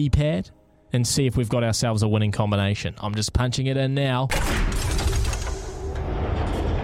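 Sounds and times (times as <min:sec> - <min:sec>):
speech: 0:00.0 - 0:05.1
vault door opening sound effect: 0:04.7 - 0:06.8.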